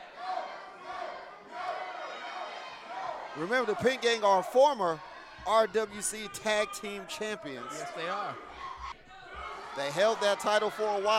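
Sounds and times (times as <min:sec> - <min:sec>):
wrestling crowd shouting and jeering in disapproval: 0:00.0 - 0:11.1
speech: 0:03.4 - 0:08.7, 0:09.8 - 0:11.1.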